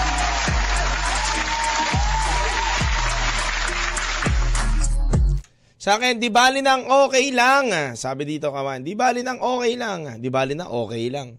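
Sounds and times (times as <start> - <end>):
group applause: 0.0 - 5.0
speech: 5.8 - 11.3.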